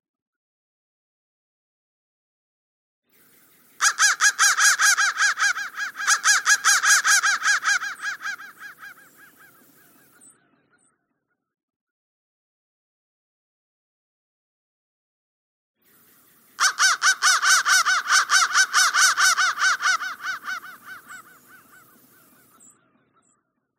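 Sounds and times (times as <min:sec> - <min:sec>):
crow cawing: 0:03.8 - 0:10.3, 0:16.6 - 0:23.4.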